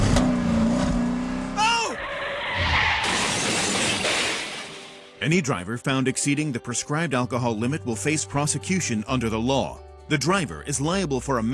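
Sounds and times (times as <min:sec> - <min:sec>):
car driving off with steady engine roar: 0:00.0 - 0:03.8
sharp high squeal dropping in pitch: 0:01.6 - 0:03.6
speech: 0:05.2 - 0:11.5.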